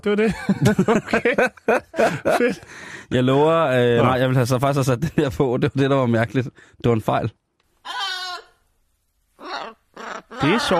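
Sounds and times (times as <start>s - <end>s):
speech: 0.0s - 8.0s, 10.4s - 10.7s
laughter: 0.3s - 2.7s, 10.4s - 10.7s
three-year-old grey African parrot calling: 7.8s - 8.6s, 9.4s - 10.7s.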